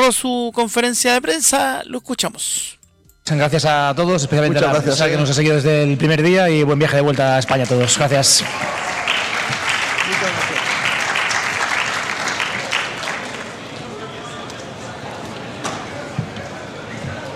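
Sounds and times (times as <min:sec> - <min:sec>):
speech: 0:00.1 - 0:09.0
applause and ovation after press conference: 0:07.4 - 0:14.3.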